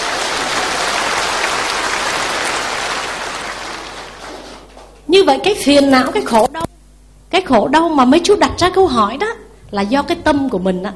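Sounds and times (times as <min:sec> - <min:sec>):
audience applause: 0:00.0 - 0:05.0
speech: 0:05.1 - 0:06.6, 0:07.3 - 0:10.9.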